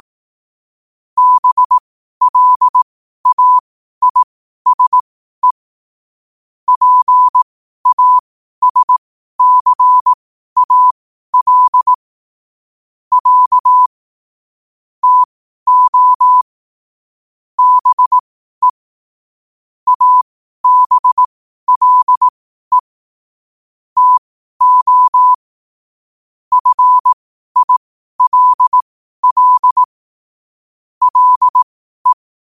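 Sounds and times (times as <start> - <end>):
morse code at 5 wpm: 1.2 - 5.6, 6.7 - 12.0, 13.1 - 13.9, 15.0 - 16.5, 17.6 - 18.8, 19.9 - 22.9, 24.0 - 25.4, 26.5 - 29.9, 31.0 - 32.5.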